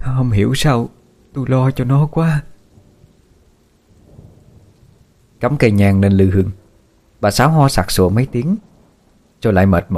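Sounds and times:
heavy pouring rain: 0:00.0 - 0:09.7
speech: 0:00.2 - 0:02.5, 0:05.4 - 0:06.6, 0:07.2 - 0:08.7, 0:09.4 - 0:09.9
deep thunder rumbling: 0:02.6 - 0:09.4.

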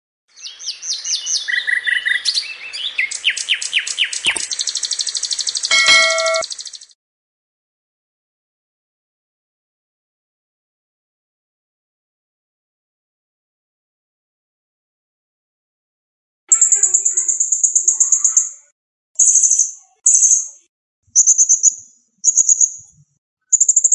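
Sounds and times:
blue-crowned hanging parrot high thin shrill song and trills: 0:00.4 - 0:06.8, 0:16.5 - 0:18.6, 0:19.2 - 0:22.9, 0:23.5 - 0:23.9.

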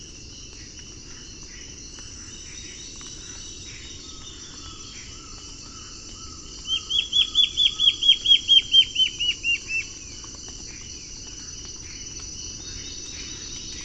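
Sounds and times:
Black-faced antbird Myrmoborus myotherinus ochrolaemus calling: 0:06.6 - 0:09.9.

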